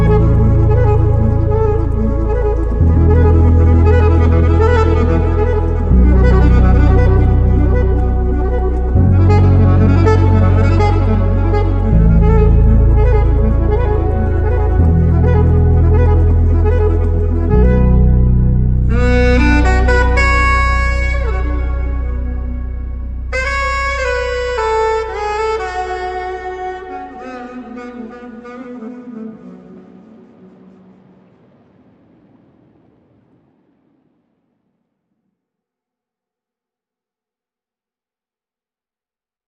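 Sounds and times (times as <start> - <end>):
saxophone with echo: 0.0 - 31.4.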